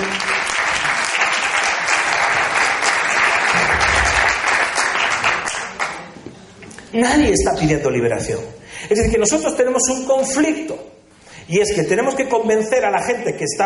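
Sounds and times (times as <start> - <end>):
audience applause: 0.0 - 6.1
speech: 7.0 - 13.6.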